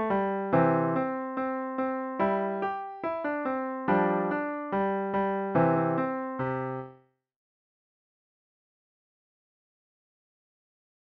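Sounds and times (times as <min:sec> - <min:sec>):
piano solo: 0:00.0 - 0:07.0.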